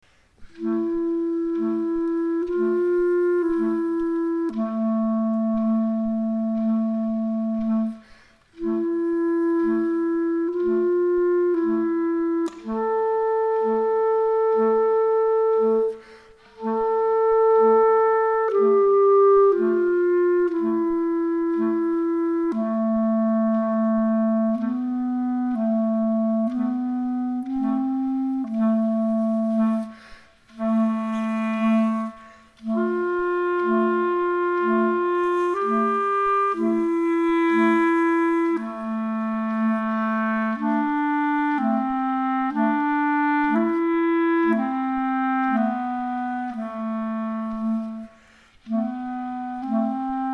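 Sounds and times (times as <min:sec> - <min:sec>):
musical duet: 0:00.0 - 0:50.3.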